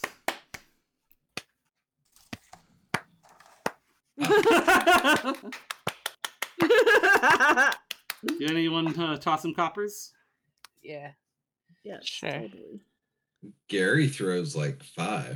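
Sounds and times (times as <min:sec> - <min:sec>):
people clapping: 0:00.0 - 0:00.7, 0:02.3 - 0:09.3
loud overlapping voices and laughter: 0:04.2 - 0:05.6, 0:06.5 - 0:09.4
speech: 0:04.2 - 0:05.7, 0:06.8 - 0:10.2, 0:10.8 - 0:11.2, 0:11.8 - 0:15.3.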